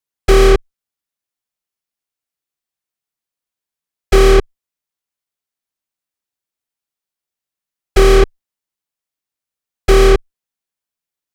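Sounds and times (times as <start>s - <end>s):
bass in G: 0.3s - 0.6s, 4.1s - 4.4s, 8.0s - 8.3s, 9.9s - 10.2s.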